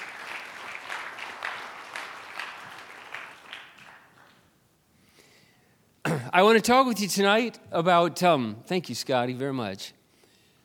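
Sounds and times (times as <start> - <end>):
crowd applause: 0.0 - 4.4
speech: 6.1 - 10.0.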